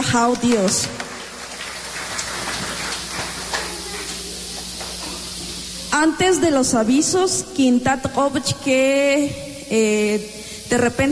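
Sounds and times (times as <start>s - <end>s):
loud audience applause: 0.0s - 5.8s
speech: 0.1s - 1.0s, 6.0s - 11.0s.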